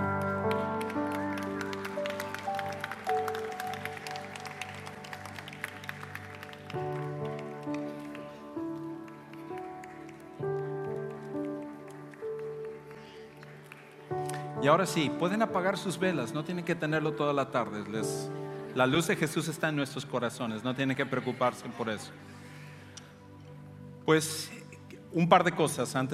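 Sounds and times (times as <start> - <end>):
audience applauding: 0.0 - 19.5
speech: 14.6 - 22.3, 24.1 - 26.1.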